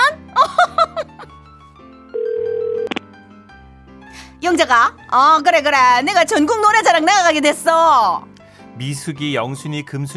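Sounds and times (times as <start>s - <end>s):
laughter: 0.4s - 1.3s
telephone dial tone effect: 2.2s - 3.0s
speech: 4.5s - 10.1s.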